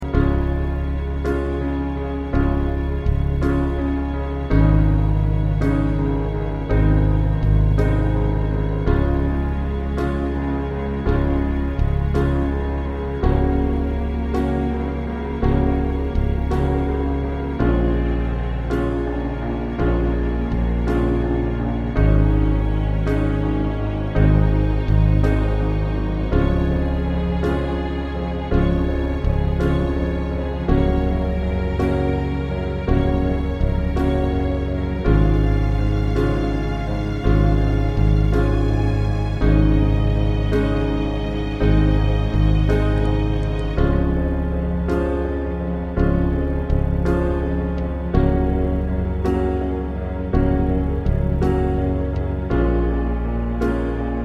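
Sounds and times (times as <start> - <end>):
musical accompaniment: 0.0 - 54.2.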